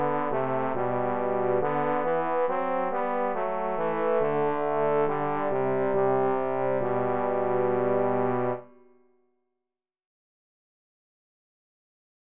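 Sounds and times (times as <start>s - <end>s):
trombone duet with accompaniment: 0.0s - 8.6s.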